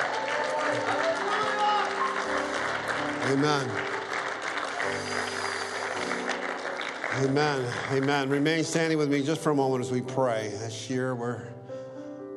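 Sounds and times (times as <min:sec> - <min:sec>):
audience clapping: 0:00.0 - 0:09.3
speech: 0:03.3 - 0:03.9, 0:04.9 - 0:05.5, 0:07.2 - 0:11.6.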